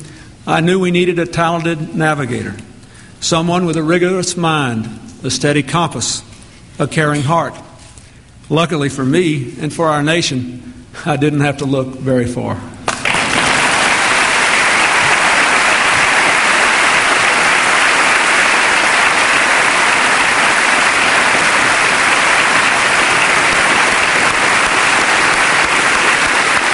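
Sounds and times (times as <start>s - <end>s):
speech: 0.5s - 7.7s, 8.5s - 12.8s
standing ovation applause from Congress: 12.9s - 26.7s.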